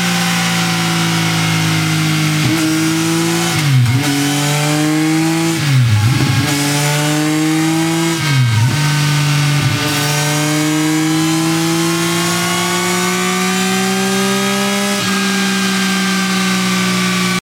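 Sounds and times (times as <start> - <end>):
Triumph Speed Triple motorcycle engine: 0.0 - 17.4.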